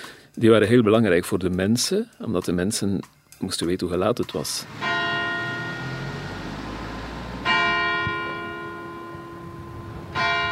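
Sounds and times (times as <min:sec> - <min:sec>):
speech: 0:00.4 - 0:05.0
church clock bells striking the hour: 0:04.7 - 0:10.4.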